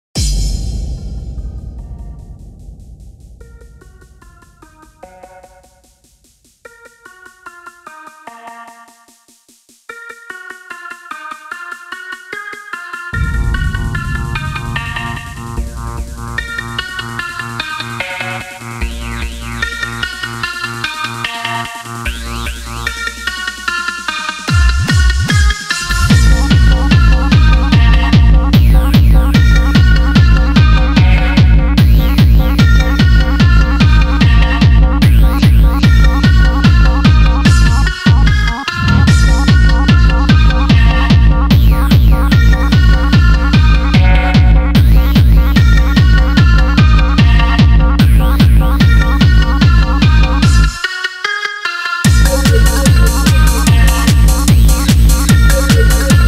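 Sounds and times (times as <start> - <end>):
dance music: 13.2 - 19.6, 21.9 - 56.2.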